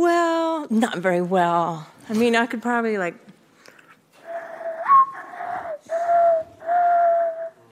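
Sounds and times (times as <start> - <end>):
speech: 0.7 - 3.3
person whistling mourning dove call imitation: 4.3 - 7.6.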